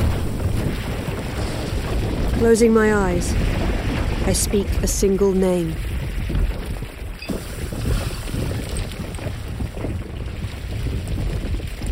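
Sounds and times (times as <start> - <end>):
cold wind howling: 0.0 - 11.9
speech: 2.4 - 3.6, 4.2 - 5.9.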